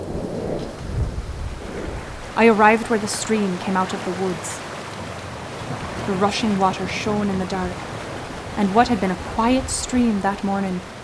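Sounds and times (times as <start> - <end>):
booming thunder: 0.0 - 2.8
speech: 2.4 - 4.7, 6.1 - 7.9, 8.6 - 10.9.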